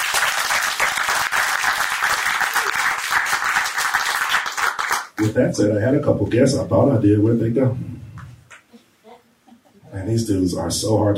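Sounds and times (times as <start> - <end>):
audience applause: 0.0 - 5.2
speech: 5.2 - 7.9, 10.1 - 11.1.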